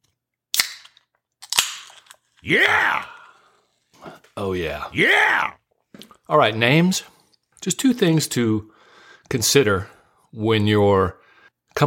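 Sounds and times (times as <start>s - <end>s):
ice-cold can of Coors Light beer cracking open: 0.5s - 2.5s
speech: 2.4s - 3.1s, 4.4s - 5.6s, 6.3s - 11.2s.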